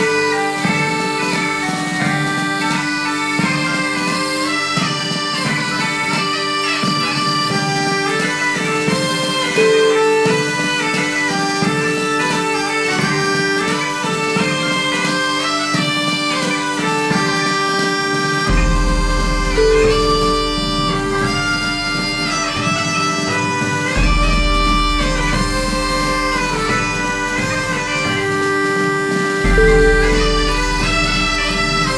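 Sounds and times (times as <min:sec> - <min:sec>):
Scottish highland bagpipes playing: 0:00.0 - 0:31.9.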